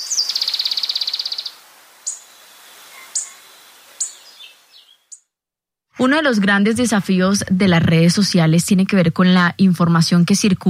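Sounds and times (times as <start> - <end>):
moustached brushfinch singing: 0.0 - 5.3
speech: 6.0 - 10.6.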